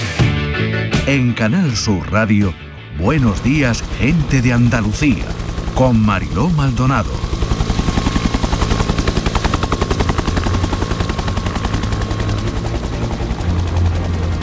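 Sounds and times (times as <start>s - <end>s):
speech: 1.0s - 7.3s
firefighting helicopter flying near flames: 3.1s - 14.4s.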